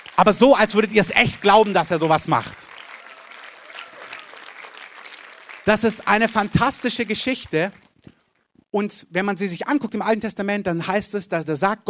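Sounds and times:
audience applause: 0.0s - 7.8s
speech: 0.2s - 2.7s, 5.6s - 7.8s, 8.7s - 11.8s.

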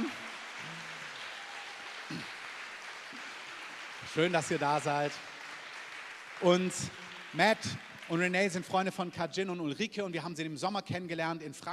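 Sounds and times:
audience applause: 0.0s - 9.2s
speech: 4.2s - 5.3s, 6.4s - 11.7s.

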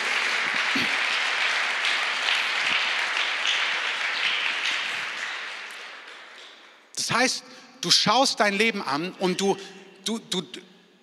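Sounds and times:
audience applause: 0.0s - 6.8s
speech: 7.1s - 11.0s.

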